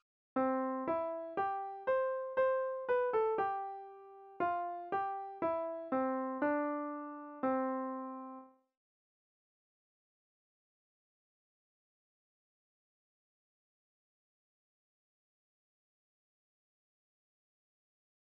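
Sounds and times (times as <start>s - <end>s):
melodic music: 0.4s - 8.5s.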